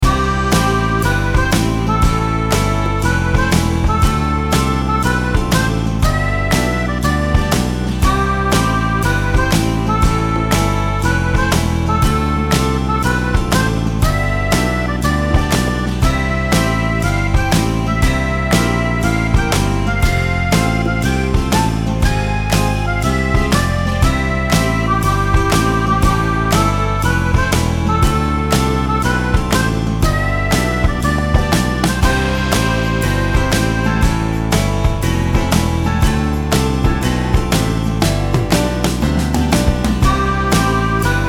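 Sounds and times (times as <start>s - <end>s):
shuffle beat: 0.0s - 41.2s.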